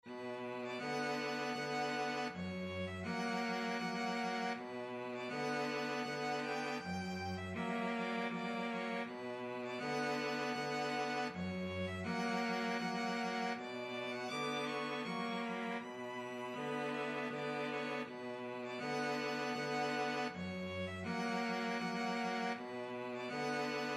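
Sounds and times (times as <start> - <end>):
violin and cello duet: 0.0 - 23.9.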